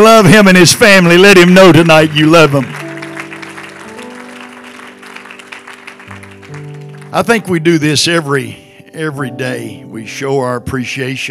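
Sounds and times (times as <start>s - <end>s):
speech: 0.0s - 2.8s, 7.1s - 11.2s
sustained organ chords: 0.0s - 11.2s
large crowd applauding: 0.4s - 7.6s.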